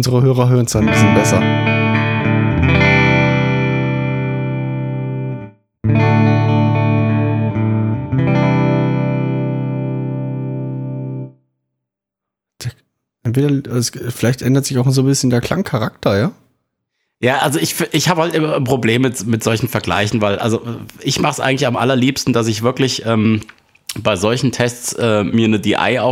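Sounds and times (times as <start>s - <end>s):
speech: 0.0s - 1.8s, 13.3s - 16.4s, 17.2s - 26.0s
heavily processed electric guitar chords played through effects pedals: 0.8s - 11.4s.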